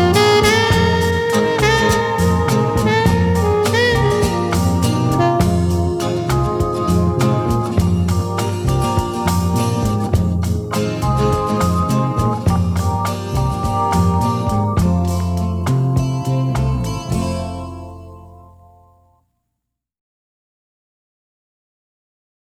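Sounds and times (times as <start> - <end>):
saxophone: 0.0 - 18.7.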